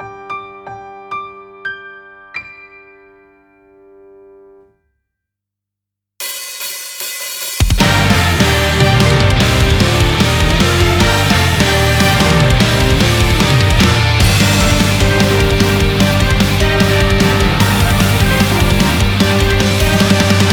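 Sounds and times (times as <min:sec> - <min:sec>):
instrumental music: 0:06.2 - 0:20.5.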